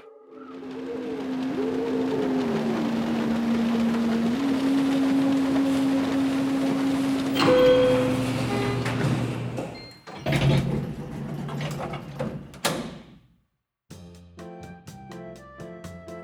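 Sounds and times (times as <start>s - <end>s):
elevator arriving after its button is pushed: 0.2s - 12.8s.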